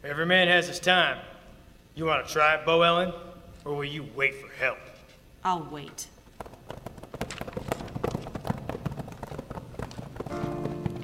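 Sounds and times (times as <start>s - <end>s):
speech: 0.0s - 1.3s, 2.0s - 6.1s
horses arriving, hooves clip-clopping: 6.1s - 11.0s.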